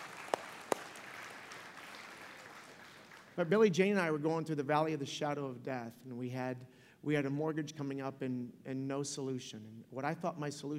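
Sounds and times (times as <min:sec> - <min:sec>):
audience clapping: 0:00.0 - 0:03.4
speech: 0:03.4 - 0:10.7.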